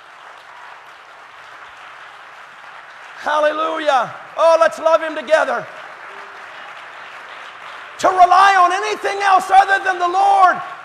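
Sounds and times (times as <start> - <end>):
crowd clapping: 0.0 - 10.8
speech: 3.2 - 5.8, 8.0 - 10.7.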